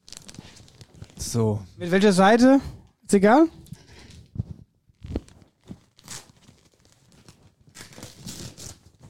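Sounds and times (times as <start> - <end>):
black-and-white gift paper crinkling and tearing as a present is unwrapped: 0.0 - 1.3, 5.0 - 9.0
speech: 1.2 - 3.6.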